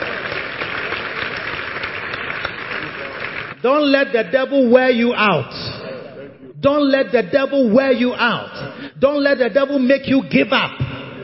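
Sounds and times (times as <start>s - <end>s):
audience applauding: 0.0s - 3.6s
speech: 3.6s - 5.6s, 6.6s - 10.8s.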